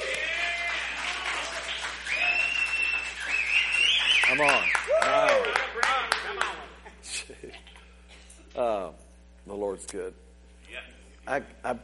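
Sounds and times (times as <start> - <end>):
audience clapping: 0.0 - 6.8
speech: 4.3 - 6.5, 8.6 - 11.8.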